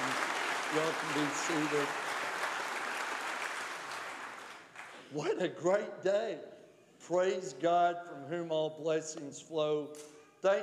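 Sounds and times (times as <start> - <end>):
audience applause: 0.0 - 5.0
speech: 0.7 - 2.0, 5.1 - 10.6.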